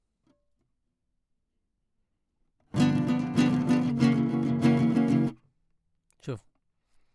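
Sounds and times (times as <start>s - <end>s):
classical guitar: 2.7s - 5.4s.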